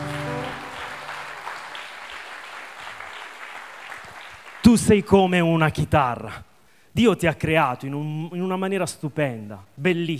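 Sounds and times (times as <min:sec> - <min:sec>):
audience applause: 0:00.0 - 0:05.0
speech: 0:04.7 - 0:10.1.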